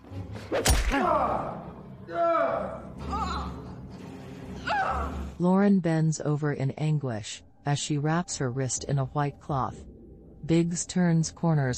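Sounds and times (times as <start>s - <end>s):
speech: 0.5s - 3.3s, 4.8s - 11.7s
thwack of a man struck with a pistol: 0.6s - 1.0s.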